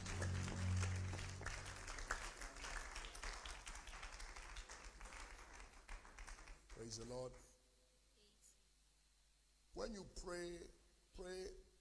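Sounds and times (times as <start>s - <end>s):
low rumble: 0.0s - 2.3s
audience clapping hands: 0.0s - 7.3s
speech: 6.8s - 7.5s, 9.8s - 11.7s.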